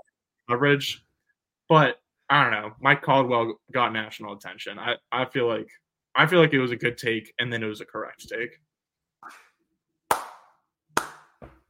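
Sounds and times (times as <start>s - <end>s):
speech: 0.5s - 1.0s, 1.7s - 9.4s
hand clapping: 10.1s - 11.6s.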